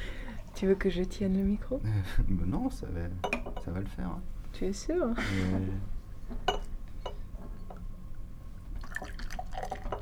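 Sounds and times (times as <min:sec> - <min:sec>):
low hum: 0:00.0 - 0:10.0
speech: 0:00.6 - 0:06.6
beer poured into a glass in the dark: 0:08.8 - 0:10.0.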